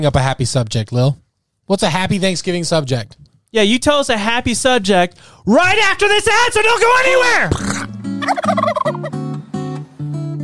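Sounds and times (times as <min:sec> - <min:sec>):
speech: 0:00.0 - 0:08.6
turkey gobbling: 0:08.2 - 0:09.2.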